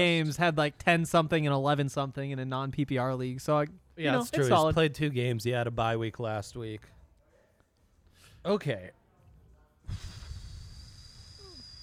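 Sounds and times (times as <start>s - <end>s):
speech: 0.0s - 7.0s, 8.4s - 9.0s, 9.9s - 10.1s
loud breath blown into a microphone: 9.8s - 11.8s.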